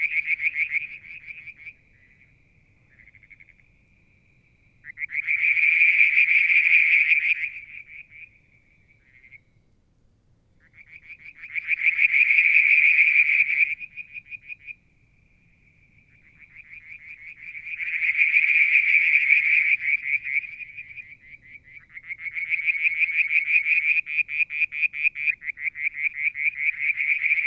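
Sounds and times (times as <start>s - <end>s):
frogs trilling: 0.0s - 9.6s, 10.6s - 27.4s.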